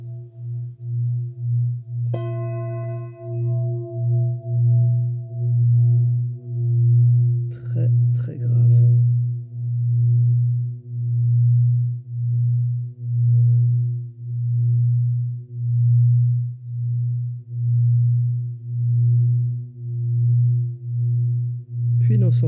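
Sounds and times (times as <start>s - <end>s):
deep grounding singing bowl droning as a stick circles its rim: 0.0s - 22.4s
bright struck singing bowl tone: 2.1s - 6.4s.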